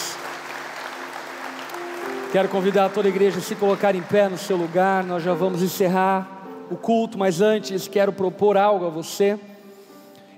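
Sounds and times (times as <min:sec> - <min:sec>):
church audience applause: 0:00.0 - 0:05.6
speech: 0:02.3 - 0:09.5.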